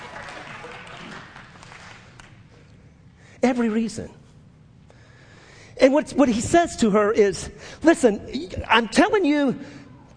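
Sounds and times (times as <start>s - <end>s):
few people clapping: 0.0s - 2.6s
speech: 3.4s - 4.2s, 5.8s - 9.8s.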